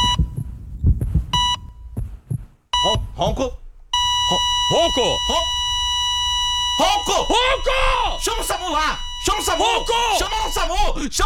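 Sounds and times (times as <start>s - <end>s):
electronic beeps: 0.0s - 0.5s, 1.3s - 1.8s, 2.8s - 11.0s
heartbeat heard through stethoscope: 0.0s - 5.6s
speech: 3.2s - 3.6s, 4.3s - 5.6s, 6.8s - 11.2s.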